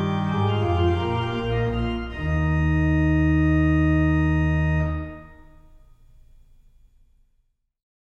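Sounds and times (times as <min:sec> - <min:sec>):
organ chorale prelude: 0:00.0 - 0:05.8.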